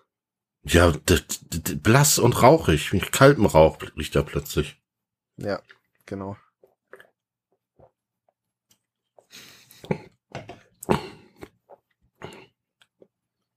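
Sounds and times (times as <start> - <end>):
speech: 0.6 - 4.8, 5.4 - 6.4
person gulping a drink of water: 5.4 - 13.5.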